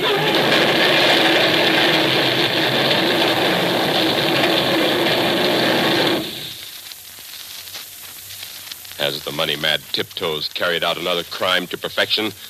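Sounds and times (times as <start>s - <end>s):
runaway truck engine roaring: 0.0s - 6.6s
speech: 9.4s - 12.4s.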